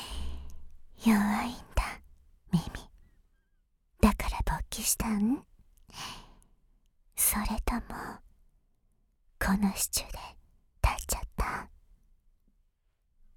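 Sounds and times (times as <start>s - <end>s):
ASMR whispering: 0.1s - 3.0s, 4.0s - 5.4s, 7.2s - 8.2s, 9.4s - 11.7s.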